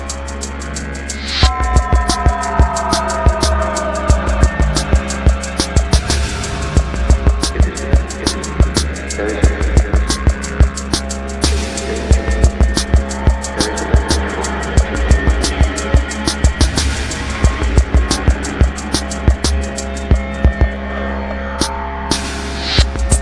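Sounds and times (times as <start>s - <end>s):
ambient music: 0.9s - 23.2s.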